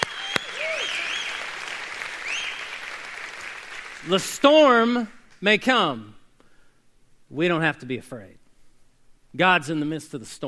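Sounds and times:
audience applause: 0:00.0 - 0:04.2
speech: 0:04.0 - 0:06.2, 0:07.3 - 0:08.4, 0:09.3 - 0:10.4.

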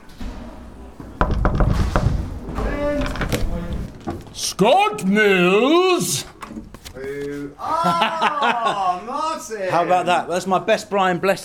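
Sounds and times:
knocking on a dressing room door: 0:01.2 - 0:03.5
speech: 0:04.4 - 0:06.3, 0:07.0 - 0:11.4
laughter: 0:07.6 - 0:10.2.

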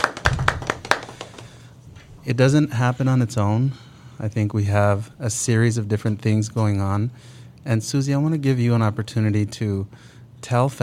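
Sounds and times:
sharp hand claps: 0:00.0 - 0:01.6
speech: 0:02.2 - 0:10.8.

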